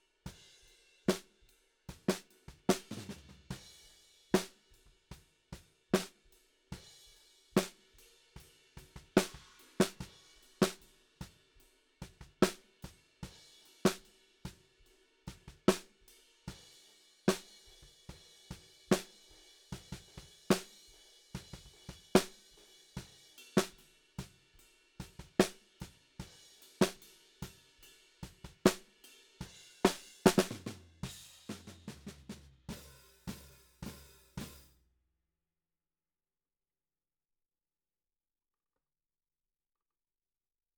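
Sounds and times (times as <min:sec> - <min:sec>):
snare drum: 0:01.9 - 0:03.6, 0:04.4 - 0:04.6, 0:06.0 - 0:06.2, 0:07.6 - 0:07.9, 0:08.8 - 0:10.8, 0:12.2 - 0:12.7, 0:15.4 - 0:16.0, 0:17.3 - 0:24.4, 0:25.0 - 0:27.6, 0:28.2 - 0:34.7.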